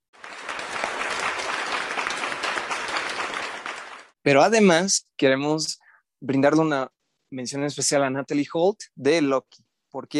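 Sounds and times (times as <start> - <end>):
small crowd clapping: 0.0 - 4.2
speech: 4.2 - 10.1.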